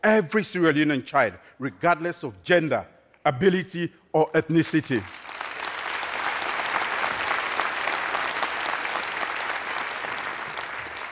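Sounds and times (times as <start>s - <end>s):
speech: 0.0s - 5.2s
audience clapping: 4.6s - 11.0s.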